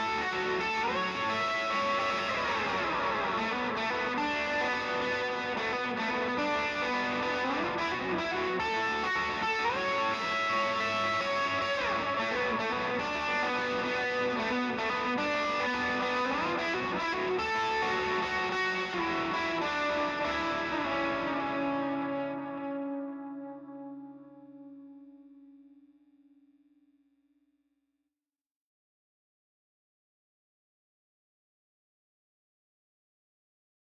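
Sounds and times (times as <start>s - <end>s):
guitars: 0.0s - 26.4s.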